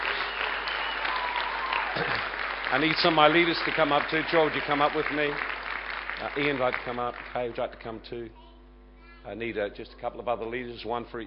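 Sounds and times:
audience applause: 0:00.0 - 0:07.6
speech: 0:02.7 - 0:05.6, 0:06.2 - 0:08.5, 0:09.2 - 0:11.2.

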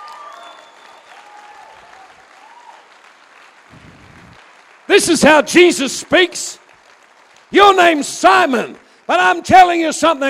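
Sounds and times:
faint voices and whoops: 0:00.0 - 0:02.9
audience clapping: 0:00.0 - 0:10.2
speech: 0:04.9 - 0:06.6, 0:07.5 - 0:10.2.

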